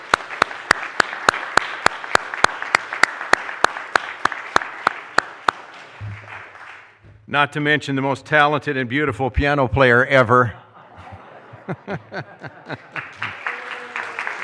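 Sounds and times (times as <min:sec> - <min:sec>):
crowd applauding: 0:00.0 - 0:07.0, 0:11.8 - 0:14.4
speech: 0:07.3 - 0:10.6, 0:11.7 - 0:12.9
laughter: 0:10.4 - 0:14.4.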